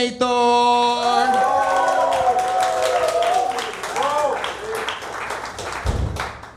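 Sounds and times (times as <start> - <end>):
speech: 0.0 - 0.3
whooping voices: 1.0 - 5.8
audience applause: 1.0 - 6.5.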